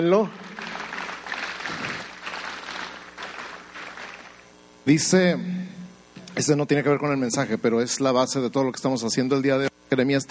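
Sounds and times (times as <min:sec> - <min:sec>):
speech: 0:00.0 - 0:00.5, 0:04.8 - 0:05.7, 0:06.4 - 0:10.2
audience applause: 0:00.0 - 0:04.5.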